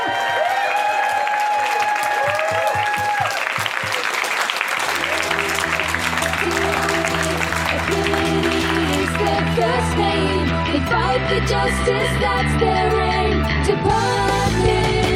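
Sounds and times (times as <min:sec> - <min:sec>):
audience applause: 0:00.0 - 0:09.5
speech: 0:09.8 - 0:15.0.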